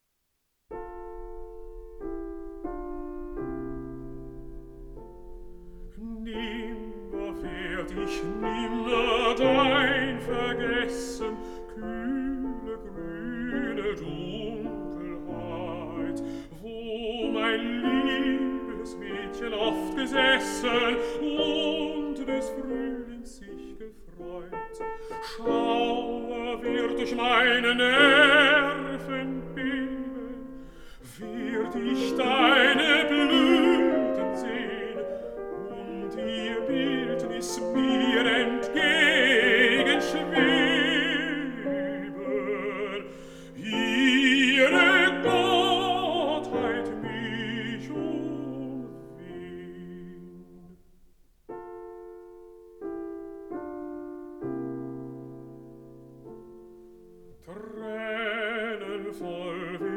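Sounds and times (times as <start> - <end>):
piano: 0.0 - 59.9
person singing: 5.8 - 50.8, 57.4 - 59.9.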